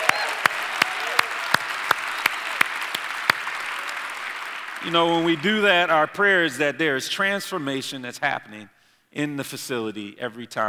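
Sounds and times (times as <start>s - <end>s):
audience applause: 0.0s - 5.8s
speech: 4.8s - 10.6s.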